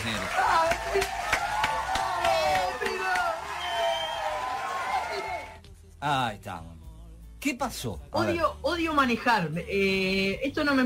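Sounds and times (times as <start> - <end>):
audience applause welcoming a guest: 0.0 - 5.6
speech: 0.1 - 1.2, 6.0 - 6.7, 7.4 - 10.8.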